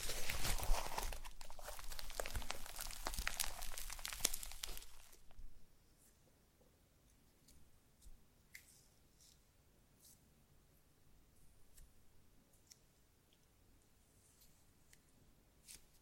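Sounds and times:
slime squishing and crackling: 0:00.0 - 0:05.4.

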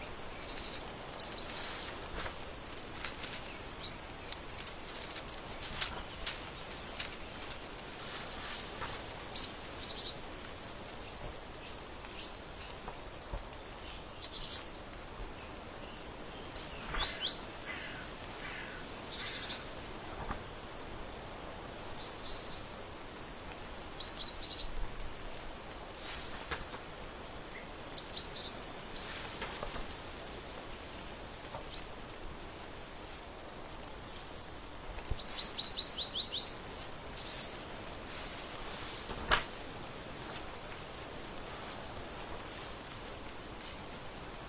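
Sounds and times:
birdsong on a porch in autumn: 0:00.0 - 0:44.4
low hiss: 0:00.0 - 0:44.4
crunching and rustling clicks: 0:01.0 - 0:15.0, 0:24.8 - 0:27.0, 0:29.0 - 0:44.4.

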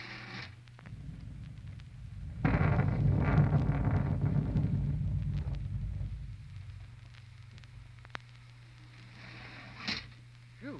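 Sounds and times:
storm: 0:00.8 - 0:08.4.

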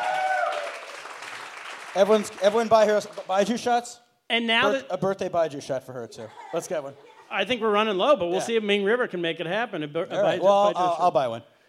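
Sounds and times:
round of applause: 0:00.0 - 0:03.5
speech: 0:02.0 - 0:11.6
laughter: 0:06.0 - 0:07.7.

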